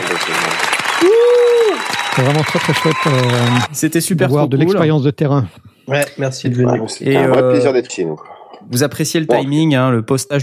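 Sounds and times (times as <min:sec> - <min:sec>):
applause: 0:00.0 - 0:03.7
speech: 0:00.2 - 0:10.4.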